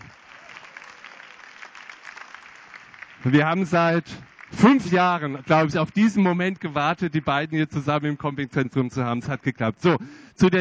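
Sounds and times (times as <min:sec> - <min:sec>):
audience applause: 0:00.0 - 0:07.6
speech: 0:03.2 - 0:10.5.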